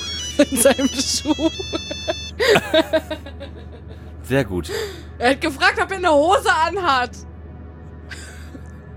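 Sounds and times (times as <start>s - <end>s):
mobile phone ringing with a bright electronic ringtone: 0.0s - 2.4s
laughter: 0.0s - 4.0s
speech: 0.4s - 3.6s, 4.3s - 7.3s.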